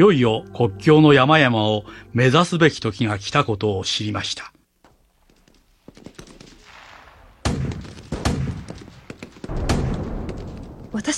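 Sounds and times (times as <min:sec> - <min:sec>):
speech: 0:00.0 - 0:04.5, 0:11.0 - 0:11.1
rattling cracks: 0:04.9 - 0:11.1
bombs and rockets exploding near a village in a radio drama: 0:06.4 - 0:11.1.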